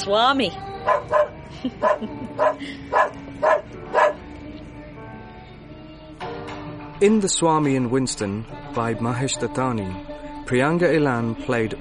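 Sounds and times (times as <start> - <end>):
speech: 0.0 - 3.6, 7.0 - 11.7
dog barking: 0.8 - 4.2.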